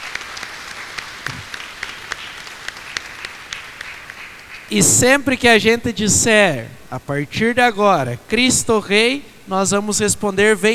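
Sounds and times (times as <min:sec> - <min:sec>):
audience applause: 0:00.0 - 0:07.2
speech: 0:04.7 - 0:10.7.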